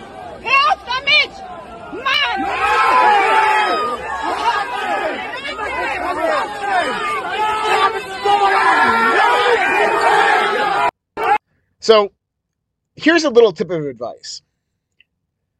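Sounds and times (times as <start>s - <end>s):
protest crowd shouting: 0.0s - 11.4s
speech: 11.9s - 12.2s, 13.0s - 14.5s.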